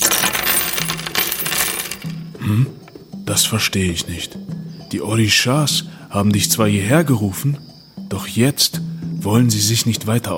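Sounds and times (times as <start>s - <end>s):
shells, stones and coins thrown onto table: 0.0s - 3.0s
speech: 3.4s - 10.3s.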